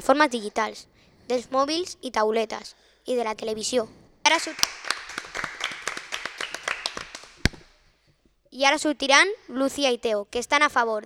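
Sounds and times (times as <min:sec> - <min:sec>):
speech: 0:00.0 - 0:04.9, 0:08.6 - 0:11.0
small group hand claps: 0:04.3 - 0:07.9.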